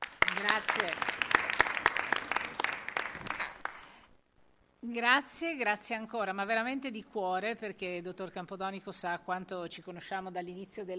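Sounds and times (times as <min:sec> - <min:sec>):
applause in assembly hall: 0:00.0 - 0:04.1
speech: 0:00.4 - 0:01.2, 0:04.8 - 0:10.9.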